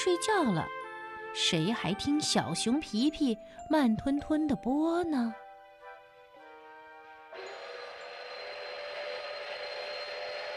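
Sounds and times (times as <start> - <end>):
speech: 0.0 - 5.4
train moving slowly: 7.4 - 10.5.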